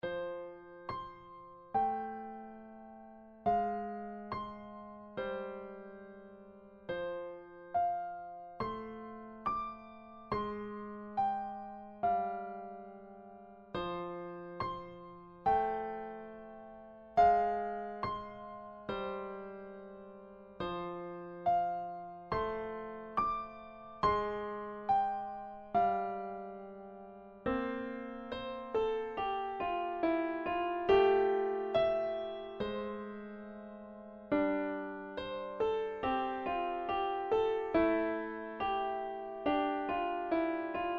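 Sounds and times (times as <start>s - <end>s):
piano: 0.0s - 40.9s.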